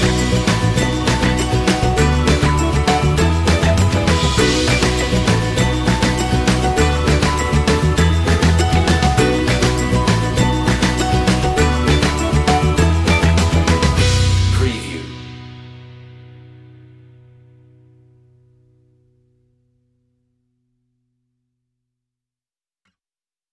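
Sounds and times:
cheerful ukulele: 0:00.0 - 0:15.0.

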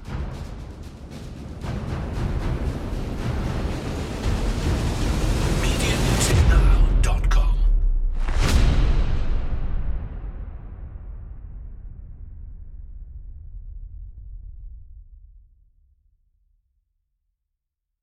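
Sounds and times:
percussion: 0:00.0 - 0:11.0.

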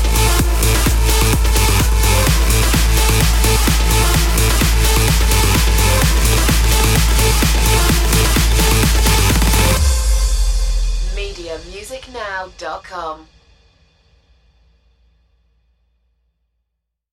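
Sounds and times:
party music drop: 0:00.0 - 0:12.2.

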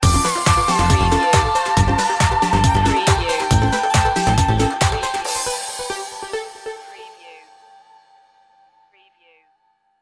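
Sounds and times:
dance music stinger: 0:00.0 - 0:07.2.

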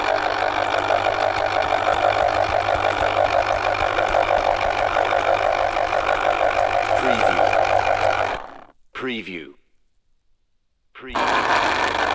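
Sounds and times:
fruit juice extractor running: 0:00.0 - 0:08.7, 0:11.2 - 0:12.1.

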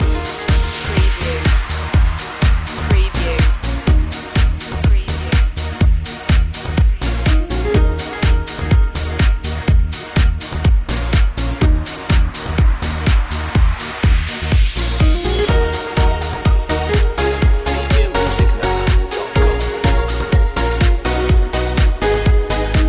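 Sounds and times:
Ibiza feeling music loop: 0:00.0 - 0:22.8.

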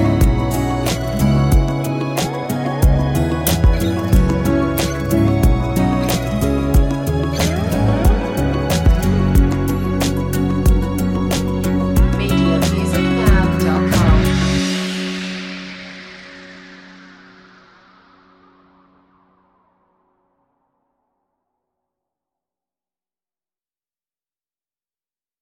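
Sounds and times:
chill acoustic music: 0:00.0 - 0:17.0.

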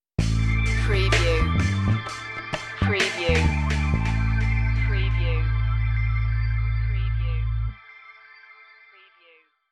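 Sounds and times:
music stinger: 0:00.2 - 0:07.8.

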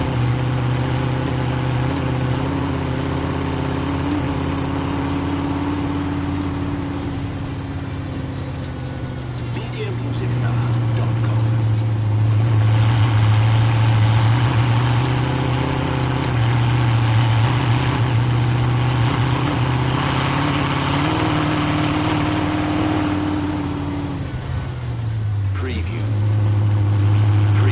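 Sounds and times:
Chevy V8 hot rod engine driving slowly: 0:00.0 - 0:27.6.

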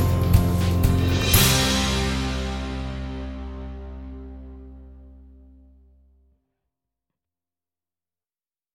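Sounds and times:
underscore music: 0:00.0 - 0:05.8.

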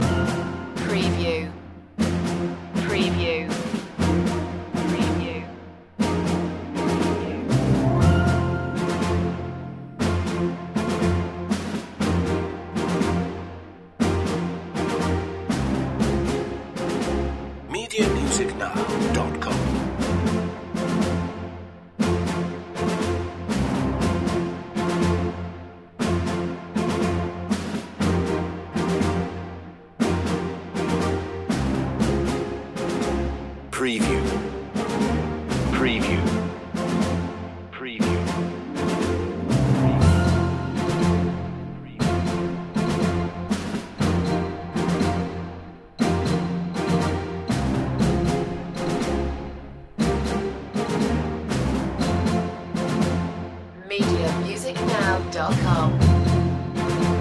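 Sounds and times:
underscore music loop: 0:00.0 - 0:57.2.

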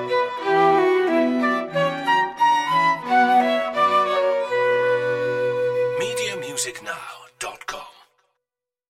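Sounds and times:
string quartet and flute playing a minuet in B minor: 0:00.0 - 0:06.8.

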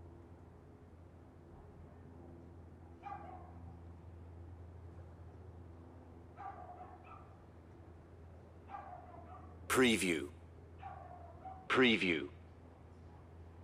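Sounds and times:
low mechanical hum: 0:00.0 - 0:13.6
dog yapping: 0:03.0 - 0:03.6, 0:06.4 - 0:07.4, 0:08.7 - 0:09.6, 0:10.8 - 0:11.7
speech: 0:09.8 - 0:10.4, 0:11.8 - 0:12.4.

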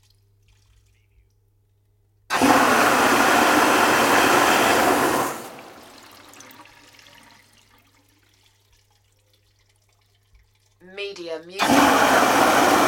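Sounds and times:
urinal flushing: 0:02.3 - 0:10.9, 0:11.6 - 0:12.8.

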